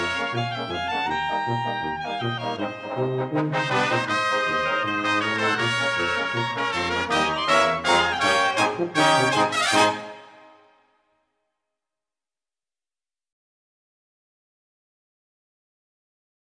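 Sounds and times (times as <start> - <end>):
galop music: 0.0 - 10.9.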